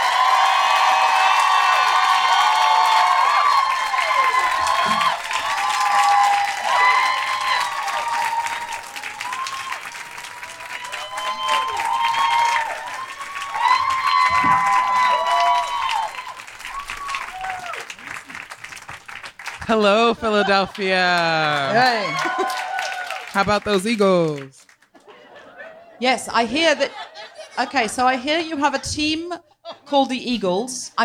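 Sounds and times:
audience clapping welcoming a speaker on stage: 0:00.0 - 0:25.2
laughter: 0:19.7 - 0:22.8, 0:24.9 - 0:30.0
speech: 0:19.8 - 0:22.6, 0:23.4 - 0:24.6, 0:26.0 - 0:27.0, 0:27.6 - 0:31.0.

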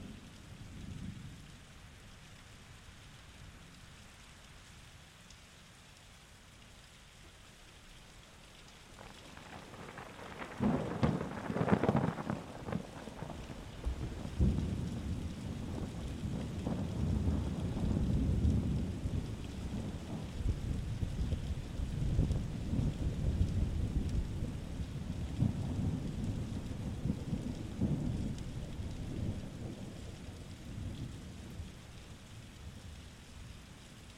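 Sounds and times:
steady rain: 0:00.0 - 0:34.1
thunder rumbling: 0:09.0 - 0:31.7
thunder crack: 0:09.3 - 0:15.0.

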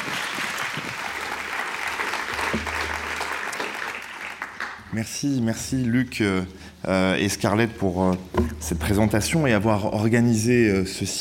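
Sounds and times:
audience clapping: 0:00.0 - 0:05.0
speech: 0:05.0 - 0:11.1.

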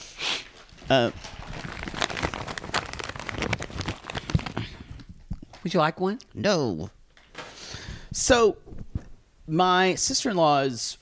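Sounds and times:
cough drop wrapper being unwrapped, crinkling: 0:00.6 - 0:05.7
speech: 0:00.9 - 0:01.3, 0:05.6 - 0:07.0, 0:08.2 - 0:08.6, 0:09.5 - 0:11.0.

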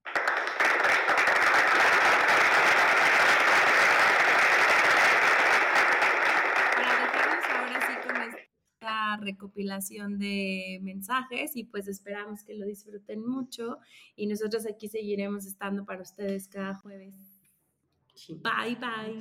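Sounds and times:
crowd applause: 0:00.0 - 0:08.5
speech: 0:09.2 - 0:17.3, 0:18.2 - 0:19.1.

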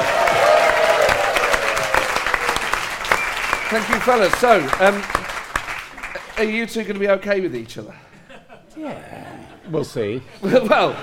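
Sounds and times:
audience applause at a comedy show's Christmas special: 0:00.0 - 0:07.1
speech: 0:03.7 - 0:05.2, 0:06.4 - 0:08.1, 0:08.8 - 0:11.0
laughter: 0:08.0 - 0:11.0.

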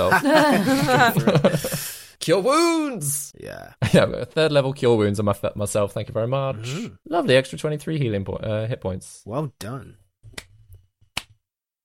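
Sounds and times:
laughter: 0:00.0 - 0:01.8
speech: 0:00.0 - 0:10.0
slow clap: 0:10.3 - 0:11.8.

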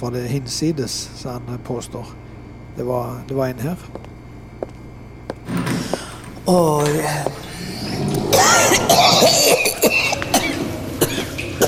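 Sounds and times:
speech: 0:00.0 - 0:04.2, 0:06.5 - 0:07.4
man gagging and retching: 0:07.7 - 0:11.6
man coughing and clearing throat: 0:08.2 - 0:11.6.

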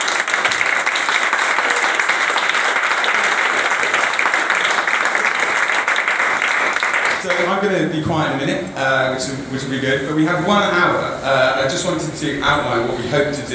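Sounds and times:
audience clapping welcoming speakers to an evening event: 0:00.0 - 0:07.6
speech: 0:07.4 - 0:13.5.

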